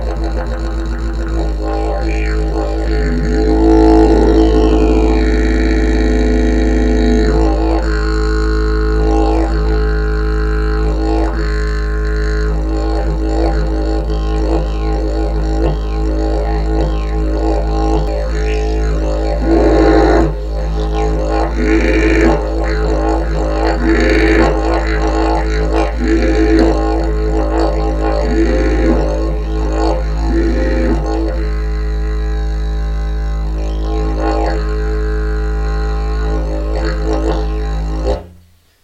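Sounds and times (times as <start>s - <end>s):
bamboo didgeridoo: 0.0s - 38.5s.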